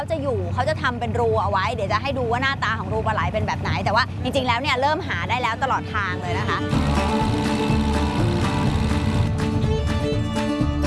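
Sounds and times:
speech: 0.0 - 8.1
boat engine running before shutting off: 6.0 - 10.7.

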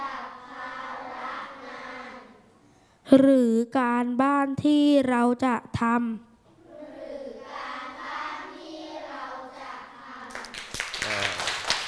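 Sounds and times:
speech: 3.1 - 6.3
students clapping hands: 10.3 - 11.8.

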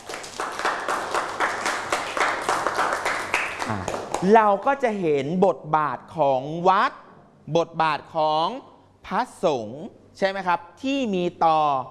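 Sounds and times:
group clapping hands: 0.0 - 4.5
speech: 3.7 - 11.8.

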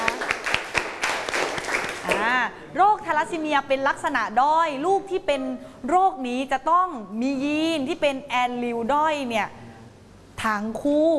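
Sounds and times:
classmates clapping for a student group in a school classroom: 0.0 - 2.4
speech: 2.5 - 9.6, 10.4 - 11.1.

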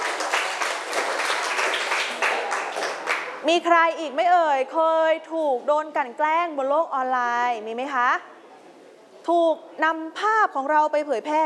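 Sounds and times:
applause for a classmate: 0.0 - 3.4
speech: 3.4 - 8.4, 9.3 - 11.4.

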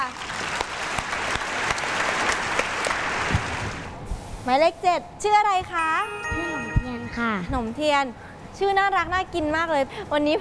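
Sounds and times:
children clapping to cheer a classmate: 0.0 - 3.8
speech: 4.5 - 6.4, 7.2 - 10.3.

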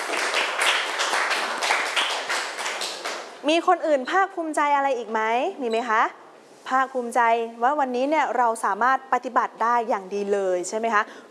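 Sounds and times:
classroom applause for classmates: 0.0 - 3.3
speech: 3.4 - 11.2.

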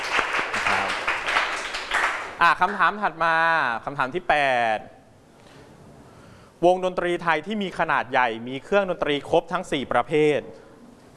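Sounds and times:
classroom students applauding a group during a Thai music lesson quiz: 0.0 - 2.8
speech: 2.4 - 5.0, 6.6 - 10.6.

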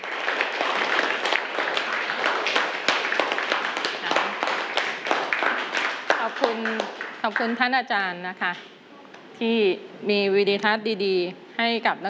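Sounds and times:
children applauding: 0.0 - 7.7
speech: 7.3 - 8.7, 9.4 - 12.0.

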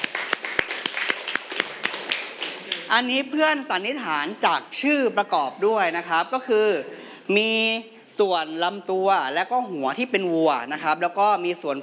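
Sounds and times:
scattered hand claps from students in a classroom: 0.0 - 2.9
speech: 2.9 - 11.8.

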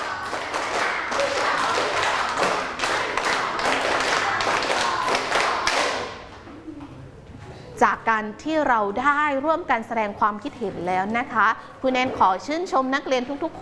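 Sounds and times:
group rhythmic hand clapping: 0.0 - 6.4
speech: 7.8 - 13.6.

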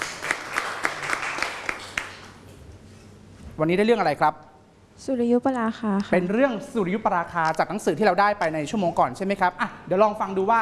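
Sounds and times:
group applauding: 0.0 - 2.5
speech: 3.6 - 10.6.

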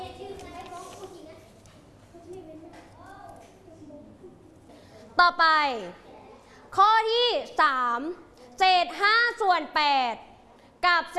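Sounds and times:
young voices chattering faintly: 0.0 - 5.2, 5.8 - 6.7
speech: 5.2 - 6.0, 6.8 - 11.1.

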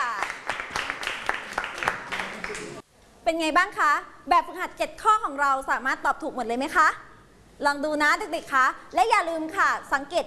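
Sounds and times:
classroom applause for winning groups: 0.0 - 2.8
speech: 3.3 - 10.2.

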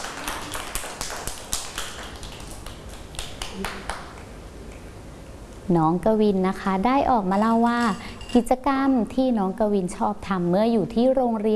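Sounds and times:
children clapping hands: 0.0 - 4.3
speech: 3.6 - 4.0, 5.7 - 11.5.

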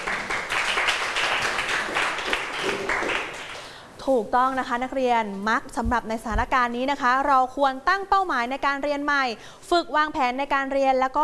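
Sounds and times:
classroom applause for a student: 0.0 - 3.8
speech: 4.1 - 11.2.

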